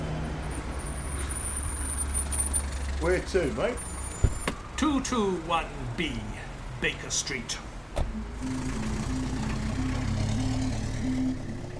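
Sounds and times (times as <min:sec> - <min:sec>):
taxi cab engine rumble in evening London streets: 0:00.0 - 0:11.7
speech: 0:03.0 - 0:03.9, 0:04.8 - 0:09.0
faint pulsing tone: 0:08.1 - 0:11.7.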